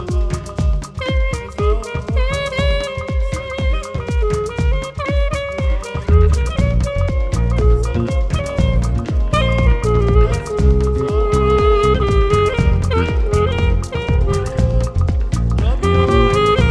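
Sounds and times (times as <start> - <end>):
saxophone: 0.0 - 16.6.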